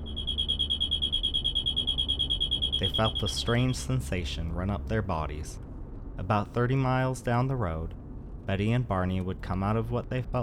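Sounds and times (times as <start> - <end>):
high-pitched electronic beeping: 0.0 - 3.9
low rumble: 0.0 - 10.4
speech: 2.8 - 5.6, 6.2 - 10.4.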